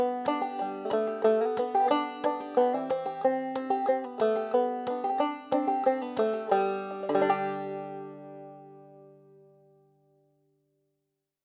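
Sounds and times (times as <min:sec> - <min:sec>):
easy fast banjo jingle: 0:00.0 - 0:08.8.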